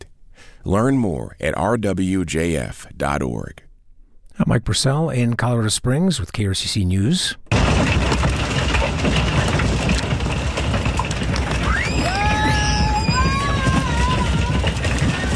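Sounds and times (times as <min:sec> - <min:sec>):
speech: 0:00.6 - 0:03.7, 0:04.4 - 0:08.4
hail falling in Colorado: 0:07.5 - 0:15.3.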